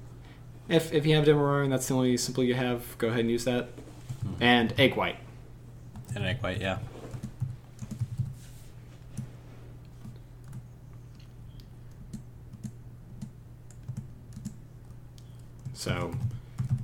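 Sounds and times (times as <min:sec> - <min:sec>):
low constant hum: 0:00.0 - 0:16.8
speech: 0:00.7 - 0:05.2, 0:06.1 - 0:06.9, 0:15.8 - 0:16.2
typing on a computer keyboard: 0:07.1 - 0:08.3, 0:10.0 - 0:10.6, 0:11.6 - 0:16.8.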